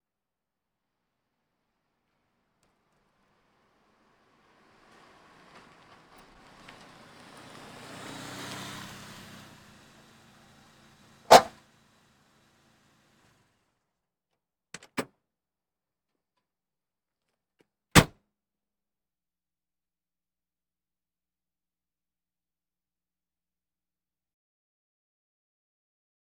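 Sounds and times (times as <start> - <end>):
various automobiles: 1.5 - 13.8.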